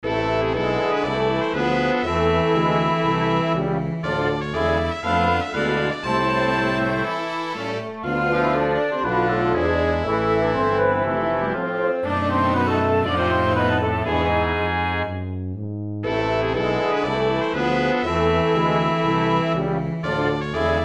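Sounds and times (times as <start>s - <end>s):
dark march music: 0.0s - 20.8s.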